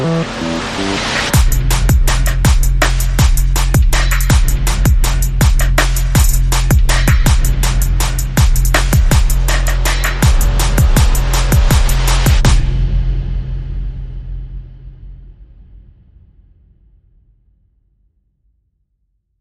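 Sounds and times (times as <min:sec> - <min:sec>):
groove with bass without effects: 0:00.0 - 0:13.0.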